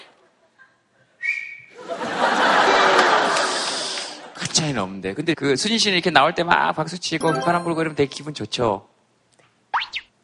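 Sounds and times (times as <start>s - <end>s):
person giving a short high whistle: 1.2s - 1.7s
laughter: 1.8s - 4.4s
speech: 4.6s - 8.9s.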